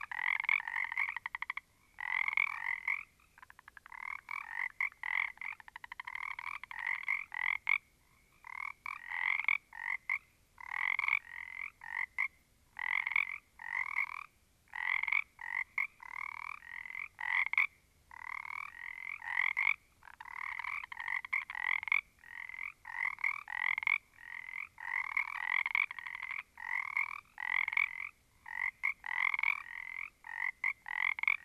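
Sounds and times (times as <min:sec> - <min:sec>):
small group of frogs: 0:00.0 - 0:31.4.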